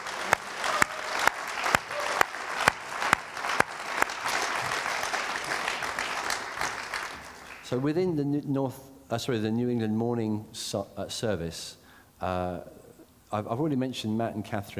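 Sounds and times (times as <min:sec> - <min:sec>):
people applauding: 0:00.0 - 0:07.8
speech: 0:07.7 - 0:14.7.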